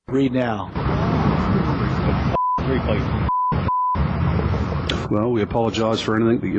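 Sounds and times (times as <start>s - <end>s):
outdoor noise: 0.0s - 6.5s
speech: 0.1s - 3.3s, 5.1s - 6.5s
censor beeps over profanity: 2.3s - 4.0s.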